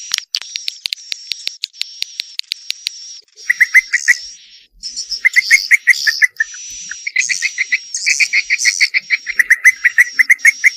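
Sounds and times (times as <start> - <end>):
swiftlet calls used as a lure: 3.2 - 10.7.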